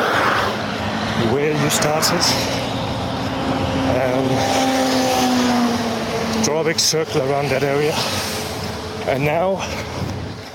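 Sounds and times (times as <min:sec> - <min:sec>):
motorway traffic roar of passing vehicles heard from a bridge: 0:00.0 - 0:10.5
low engine hum: 0:00.5 - 0:10.5
speech: 0:01.2 - 0:02.7, 0:03.5 - 0:04.7, 0:06.4 - 0:08.4, 0:09.0 - 0:10.0.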